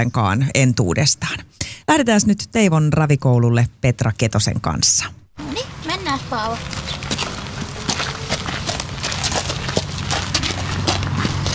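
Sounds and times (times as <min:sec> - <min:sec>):
speech: 0:00.0 - 0:07.0
warmblood gelding hooves walking: 0:05.4 - 0:11.5.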